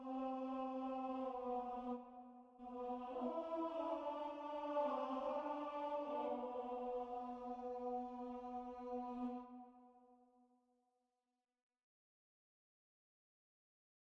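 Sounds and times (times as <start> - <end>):
tenor singing: 0.0 - 9.6.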